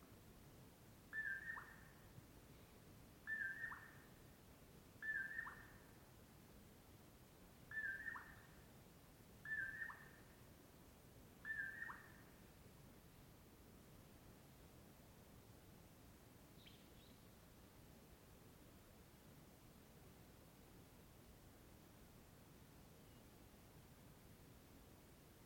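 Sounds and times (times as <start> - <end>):
faint low hiss: 0.0 - 25.4
Common Poorwill whistled song: 1.1 - 1.9, 3.3 - 4.0, 5.0 - 5.8, 7.7 - 8.5, 9.4 - 10.2, 11.4 - 12.2, 16.6 - 17.2.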